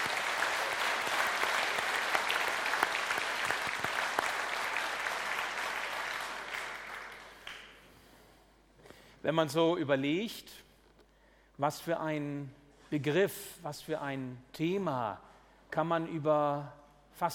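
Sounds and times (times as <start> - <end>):
audience applause: 0.0 - 7.8
speech: 9.3 - 10.6, 11.6 - 17.3.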